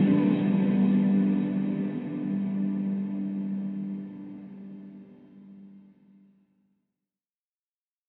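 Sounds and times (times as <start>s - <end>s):
guitar: 0.0s - 6.1s.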